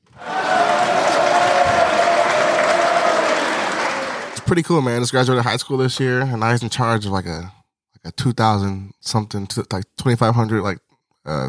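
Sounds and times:
applause: 0.1 - 4.6
speech: 4.5 - 11.4.

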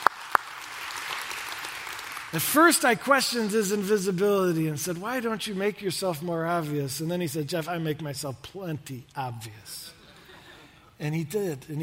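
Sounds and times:
sharp claps: 0.0 - 2.6
audience applause: 0.0 - 2.8
speech: 2.3 - 10.0, 11.0 - 11.8.

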